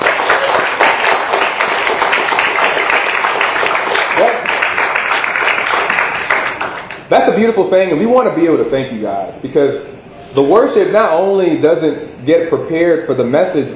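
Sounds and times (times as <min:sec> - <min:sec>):
audience applause: 0:00.0 - 0:07.0
speech: 0:07.1 - 0:13.7.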